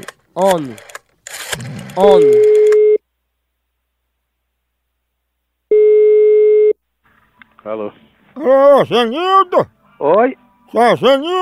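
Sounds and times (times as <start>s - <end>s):
speech: 0.4s - 0.9s, 1.6s - 2.7s, 7.6s - 11.4s
telephone ringback tone as a call is placed: 2.1s - 3.0s, 5.7s - 6.8s.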